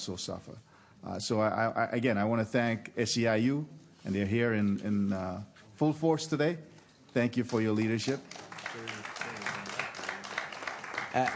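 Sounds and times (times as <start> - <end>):
speech: 0.0 - 9.0, 11.1 - 11.3
audience applause in meeting room: 8.1 - 11.3.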